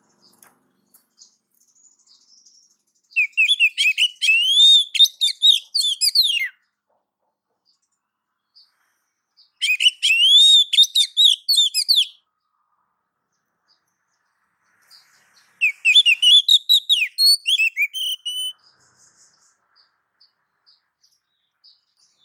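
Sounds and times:
female oriental magpie-robin giving a soft rising whistled call: 3.2s - 6.6s, 9.6s - 12.2s, 15.6s - 18.6s.

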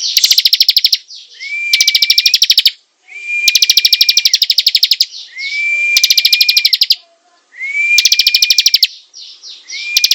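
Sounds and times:
Bar-winged prinia singing buzzy rattles: 0.0s - 2.8s, 3.4s - 5.3s, 5.9s - 7.0s, 7.9s - 10.1s.

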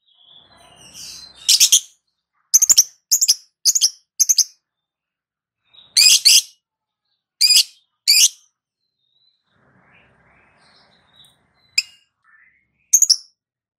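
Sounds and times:
lovebird calling: 1.0s - 1.9s, 2.6s - 4.5s, 6.0s - 6.5s, 7.4s - 8.4s, 13.0s - 13.2s.

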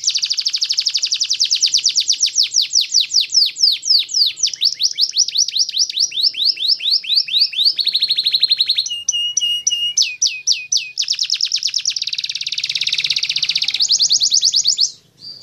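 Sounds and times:
canary singing: 0.0s - 15.4s.

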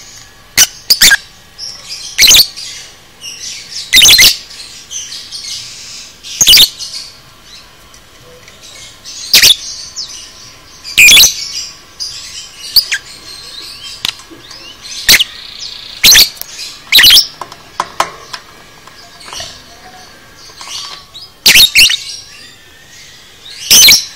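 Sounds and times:
lovebird squawking calls: 0.6s - 1.2s, 2.0s - 7.1s, 9.1s - 10.3s, 10.9s - 17.4s, 19.2s - 22.3s, 23.6s - 24.1s.

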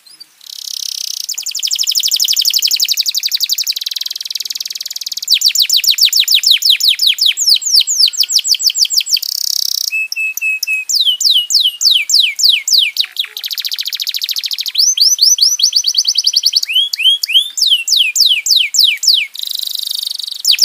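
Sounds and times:
domestic canary trilling song: 0.0s - 20.6s.

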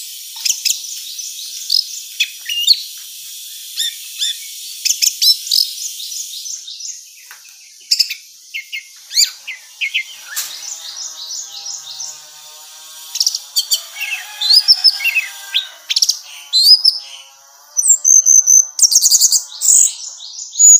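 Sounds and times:
high-pitched insect-like hum: 0.0s - 20.7s
orange-headed thrush singing: 9.0s - 20.7s.

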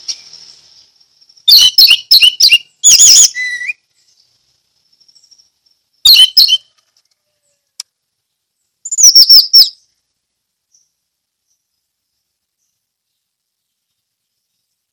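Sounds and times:
orange-headed thrush song: 1.4s - 4.2s, 6.0s - 6.7s, 8.8s - 9.8s.

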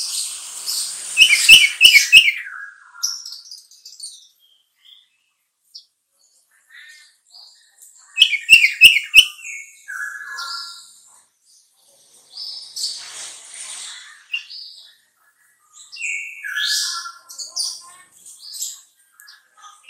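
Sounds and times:
sooty-headed bulbul song: 1.2s - 2.5s, 8.2s - 9.4s.

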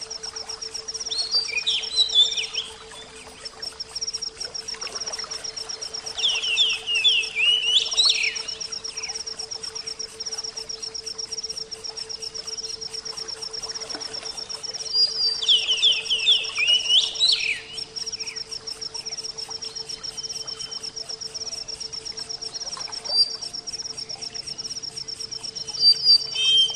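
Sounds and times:
oriental magpie-robin whistled song: 1.1s - 2.8s, 6.2s - 8.6s, 14.9s - 17.8s, 25.6s - 26.7s.

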